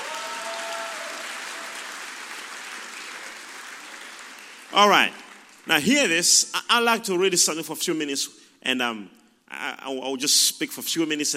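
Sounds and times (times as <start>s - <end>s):
audience clapping hands: 0.0s - 6.2s
speech: 4.8s - 11.3s.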